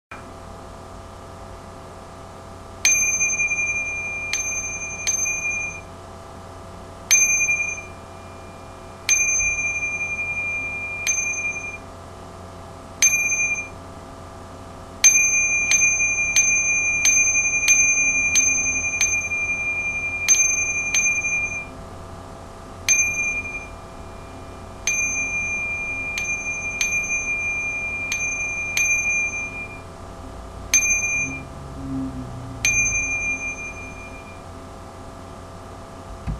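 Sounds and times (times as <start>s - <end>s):
percussion: 2.8s - 5.9s, 7.1s - 11.8s, 13.0s - 13.8s, 15.0s - 21.8s, 22.9s - 34.4s, 36.1s - 36.3s.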